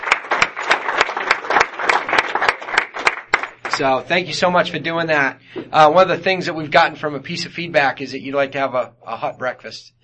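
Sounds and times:
audience round of applause: 0.0s - 3.8s
speech: 3.8s - 10.0s.

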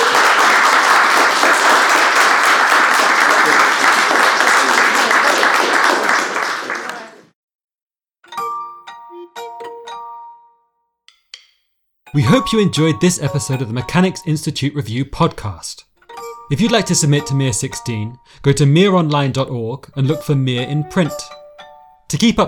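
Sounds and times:
audience applause: 0.0s - 7.4s
speech: 12.1s - 15.9s, 16.5s - 21.4s, 22.1s - 22.4s.

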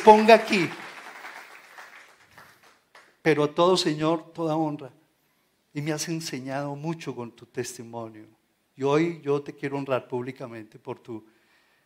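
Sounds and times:
speech: 0.0s - 0.8s, 3.2s - 5.0s, 5.8s - 11.4s
audience applause: 0.0s - 3.2s.

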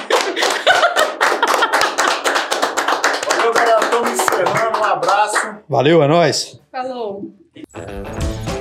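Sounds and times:
laughter: 0.0s - 2.3s
round of applause: 0.0s - 5.6s
speech: 4.4s - 8.5s.

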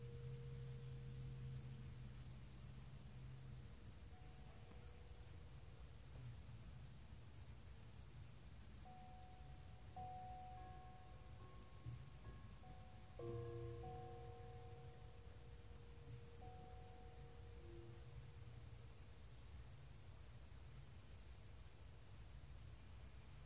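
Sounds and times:
steady white noise hiss: 0.0s - 23.4s
soft sustained bell tones: 8.9s - 18.3s.

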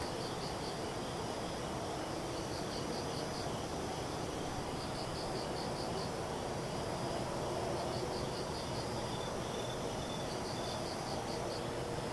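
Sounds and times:
insects chirping: 0.0s - 12.1s.

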